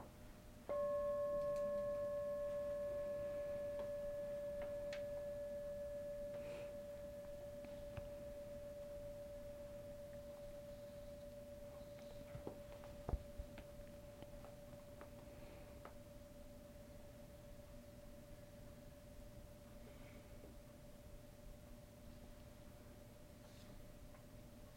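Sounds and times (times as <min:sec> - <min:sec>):
meditation bell struck once: 0:00.7 - 0:21.3.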